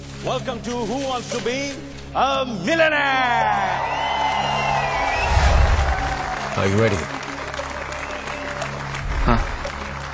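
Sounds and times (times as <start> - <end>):
speech: 0.2 - 4.1, 6.6 - 7.2
studio audience applause on Who Wants to Be a Millionaire: 3.6 - 10.1.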